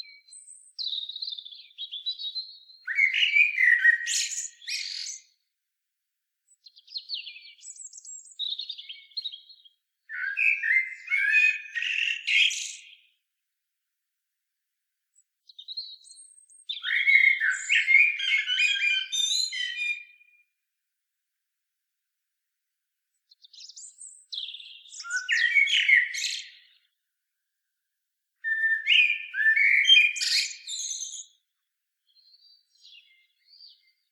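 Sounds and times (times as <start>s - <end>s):
common blackbird song: 0.0s - 5.3s, 6.6s - 13.1s, 15.5s - 20.2s, 23.3s - 27.0s, 28.4s - 31.4s, 32.1s - 34.1s.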